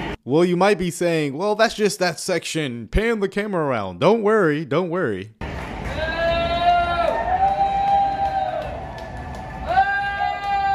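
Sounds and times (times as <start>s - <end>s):
speech: 0.2s - 5.4s
crowd booing: 5.8s - 10.7s.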